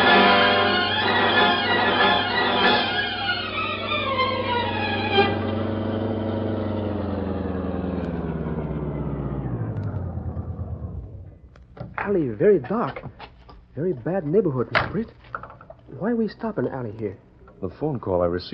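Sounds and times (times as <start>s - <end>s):
car engine droning as the vehicle drives: 0.0s - 12.1s
speech: 12.1s - 15.3s, 15.9s - 18.5s.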